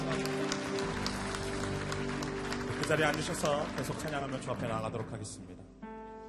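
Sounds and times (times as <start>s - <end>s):
audience applauding: 0.0s - 5.4s
speech: 2.9s - 5.8s.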